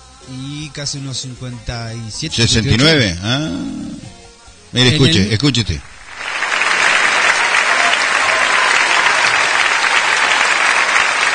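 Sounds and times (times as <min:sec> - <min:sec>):
speech: 0:00.2 - 0:03.9, 0:04.7 - 0:05.9
applause: 0:06.0 - 0:11.3.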